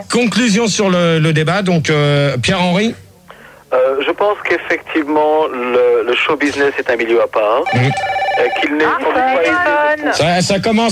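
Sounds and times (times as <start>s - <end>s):
speech: 0.0s - 3.0s, 3.8s - 10.9s
telephone ringtone of bright melodic electronic tones: 7.6s - 9.5s.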